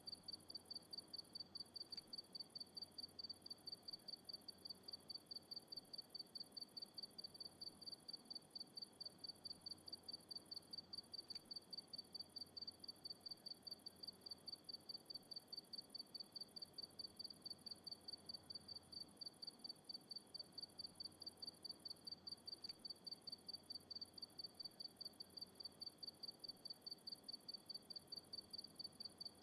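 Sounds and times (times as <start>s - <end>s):
crickets on a country night: 0.1s - 29.3s.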